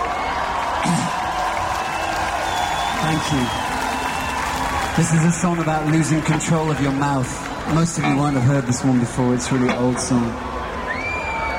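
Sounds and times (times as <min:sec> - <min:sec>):
audience applause: 0:00.0 - 0:11.5
speech: 0:00.8 - 0:01.1, 0:03.1 - 0:03.7, 0:05.0 - 0:10.5.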